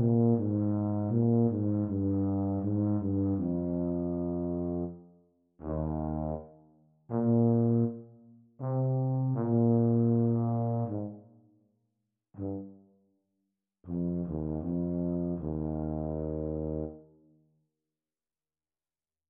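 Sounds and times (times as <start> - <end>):
E-flat tuba duet: 0.0 - 5.0, 5.6 - 6.5, 7.1 - 11.3, 12.4 - 12.8, 13.9 - 17.0.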